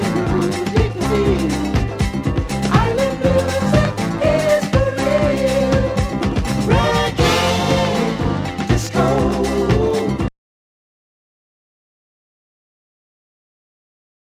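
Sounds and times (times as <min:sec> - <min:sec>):
reggae disco music: 0:00.0 - 0:10.3.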